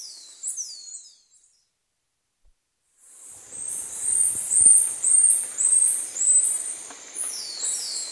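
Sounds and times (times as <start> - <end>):
black-mantled tamarin calling in South American rainforest: 3.4 - 8.1.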